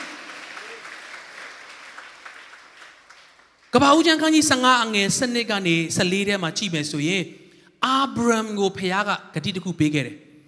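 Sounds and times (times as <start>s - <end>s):
church congregation applauding: 0.0s - 4.2s
speech: 3.8s - 10.2s.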